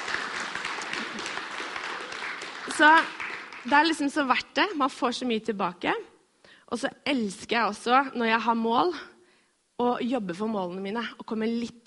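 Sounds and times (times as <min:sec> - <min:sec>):
crowd applauding: 0:00.0 - 0:03.9
speech: 0:02.8 - 0:06.1, 0:06.7 - 0:09.1, 0:09.8 - 0:11.8.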